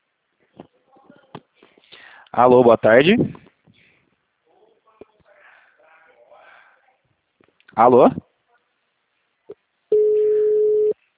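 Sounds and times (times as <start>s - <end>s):
speech: 2.4s - 3.4s, 7.8s - 8.3s
telephone call tone on a line forwarded to voicemail: 9.9s - 11.0s.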